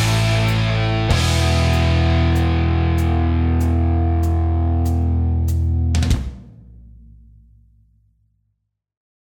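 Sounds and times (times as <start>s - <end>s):
rock backing track: 0.0s - 6.9s.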